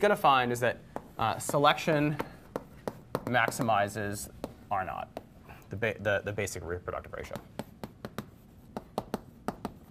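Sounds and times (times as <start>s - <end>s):
speech: 0.0s - 2.4s, 3.3s - 7.6s
writing strokes during a lecture: 0.9s - 5.4s, 7.2s - 9.8s.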